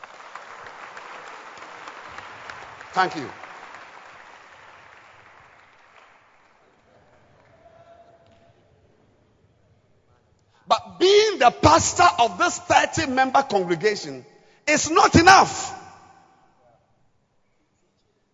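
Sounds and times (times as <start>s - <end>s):
audience clapping: 0.0s - 7.7s
speech: 2.9s - 3.4s, 11.4s - 15.8s.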